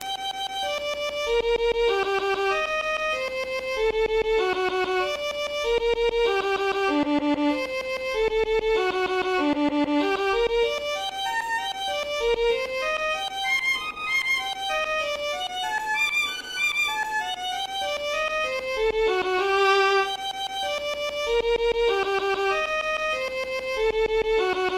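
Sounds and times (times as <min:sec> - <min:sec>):
violin solo: 0:00.0 - 0:24.7.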